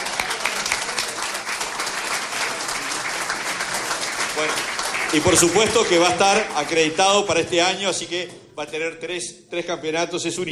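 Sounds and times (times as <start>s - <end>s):
crowd applause: 0.0s - 7.3s
speech: 4.4s - 10.5s.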